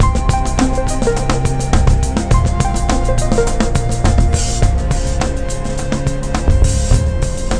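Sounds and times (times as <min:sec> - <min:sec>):
music loop: 0:00.0 - 0:07.5.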